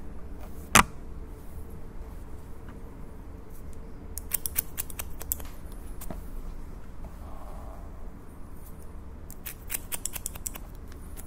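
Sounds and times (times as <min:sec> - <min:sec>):
low steady indoor hum: 0:00.0 - 0:11.2
scissors cutting in crisp snips: 0:04.2 - 0:05.6, 0:09.3 - 0:11.2.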